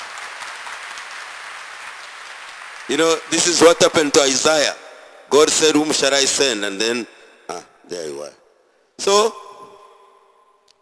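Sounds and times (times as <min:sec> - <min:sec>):
audience clapping for a boy: 0:00.0 - 0:04.5
speech: 0:02.9 - 0:08.4, 0:09.0 - 0:09.4.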